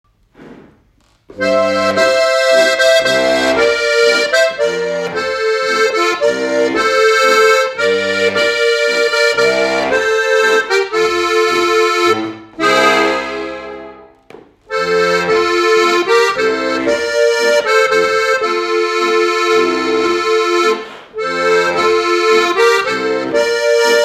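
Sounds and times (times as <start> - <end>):
harmonica playing: 1.3 - 24.0.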